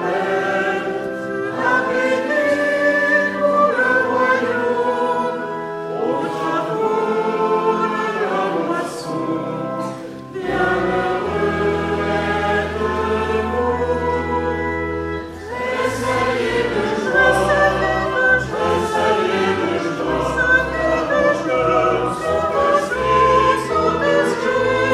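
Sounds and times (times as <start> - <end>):
entrance chant: 0.0 - 24.9.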